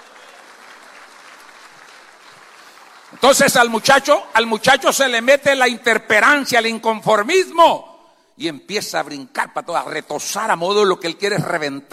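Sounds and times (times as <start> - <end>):
applause: 0.0 - 4.2
speech: 3.1 - 11.9.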